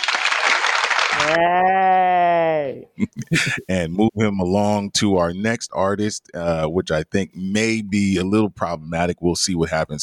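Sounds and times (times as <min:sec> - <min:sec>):
applause: 0:00.0 - 0:01.4
speech: 0:01.3 - 0:02.1, 0:02.7 - 0:10.0.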